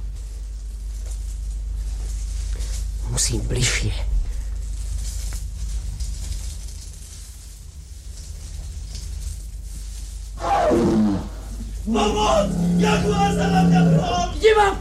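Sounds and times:
low steady rumbling noise: 0.0s - 14.7s
speech: 3.2s - 4.1s, 12.0s - 14.7s
jaguar roaring: 10.4s - 14.7s.

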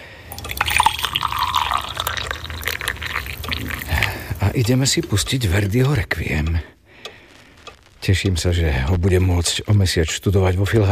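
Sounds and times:
hot water poured over coffee: 0.0s - 5.6s
speech: 4.5s - 6.8s, 8.0s - 10.9s.

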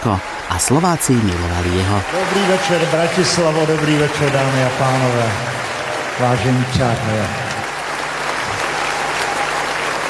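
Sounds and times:
speech: 0.0s - 7.5s
audience applause greeting a performer at a show in Bratislava: 0.0s - 10.0s.

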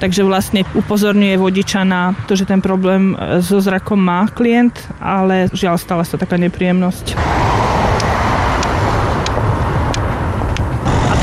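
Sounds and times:
speech: 0.0s - 7.6s
car engine noise: 0.0s - 11.2s
car stopping abruptly: 7.2s - 11.2s.

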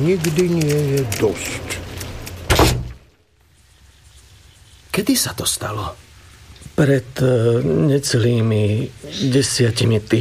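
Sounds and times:
speech: 0.0s - 1.8s, 5.0s - 6.0s, 6.8s - 10.1s
door being closed and locked: 2.2s - 3.0s.

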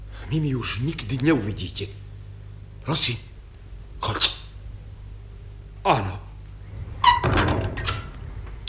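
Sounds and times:
speech: 0.3s - 2.0s, 2.9s - 3.3s, 4.0s - 4.4s, 5.8s - 6.2s
door squeak: 7.0s - 8.1s.

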